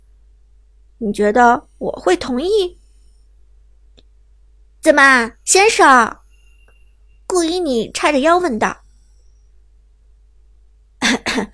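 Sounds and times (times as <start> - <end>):
speech: 1.0 - 2.8, 4.8 - 6.2, 7.3 - 8.8, 11.2 - 11.5
person coughing: 11.0 - 11.5.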